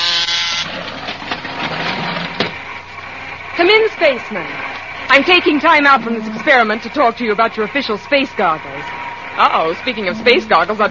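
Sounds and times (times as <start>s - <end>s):
harsh electric buzzer: 0.0s - 0.8s
speech: 3.6s - 10.8s.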